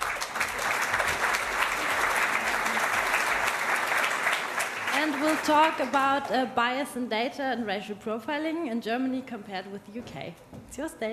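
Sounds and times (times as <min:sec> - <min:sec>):
audience applause on stage: 0:00.0 - 0:06.2
speech: 0:05.2 - 0:11.1.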